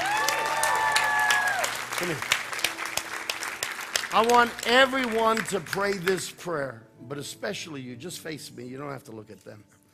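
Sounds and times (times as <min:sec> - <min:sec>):
voices whooping and cheering: 0:00.0 - 0:01.8
crowd clapping: 0:00.0 - 0:06.4
speech: 0:02.0 - 0:02.4, 0:04.1 - 0:09.8.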